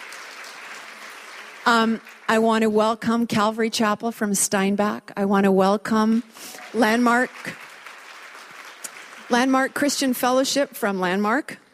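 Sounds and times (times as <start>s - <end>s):
crowd applause: 0.0s - 2.3s, 6.4s - 9.8s
speech: 1.6s - 7.6s, 9.3s - 11.6s.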